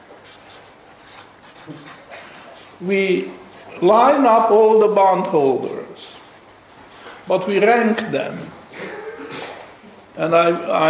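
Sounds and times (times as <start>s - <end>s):
pen scratching while writing: 0.2s - 7.7s
speech: 1.6s - 2.1s, 2.8s - 5.8s, 7.3s - 8.6s, 10.2s - 10.8s.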